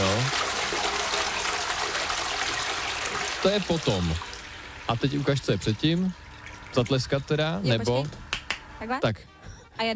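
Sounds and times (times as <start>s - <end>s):
toilet flush: 0.0s - 7.8s
speech: 3.4s - 4.3s, 4.9s - 8.2s, 8.8s - 9.9s.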